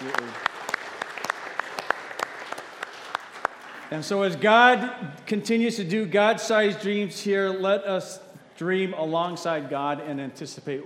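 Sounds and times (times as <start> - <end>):
audience applause: 0.0 - 4.0
speech: 3.9 - 10.8.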